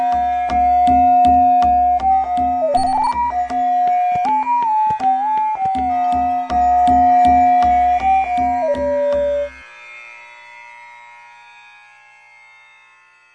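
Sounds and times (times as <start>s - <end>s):
AI flute playing Raga Bhairavi: 0.0s - 9.8s.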